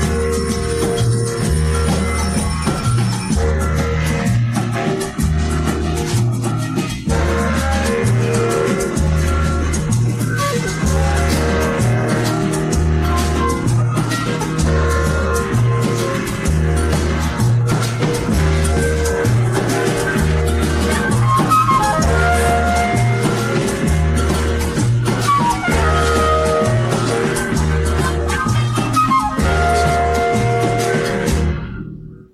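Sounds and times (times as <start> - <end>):
groove jazz music: 0.0 - 32.2.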